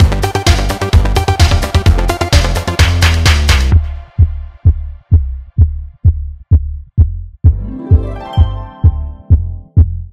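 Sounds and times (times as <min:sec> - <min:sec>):
trailer music: 0:00.0 - 0:05.4, 0:07.5 - 0:10.0.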